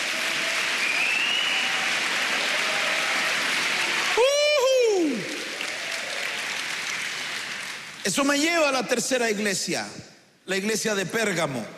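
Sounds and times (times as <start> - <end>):
audience clapping: 0.0 - 8.4
speech: 8.1 - 11.7.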